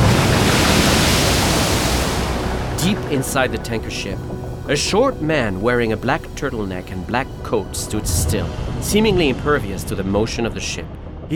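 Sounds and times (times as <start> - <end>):
ocean waves rolling around a supertanker at night on the Arabian Sea: 0.0 - 4.6, 7.3 - 11.3
speech: 2.8 - 11.3.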